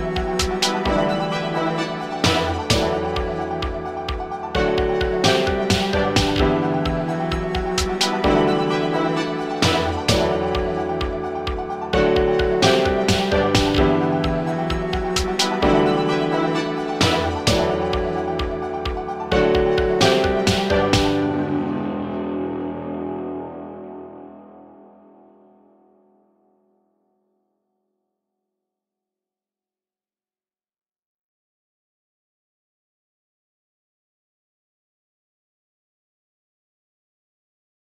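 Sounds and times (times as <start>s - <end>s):
royalty free music: 0.0s - 27.9s.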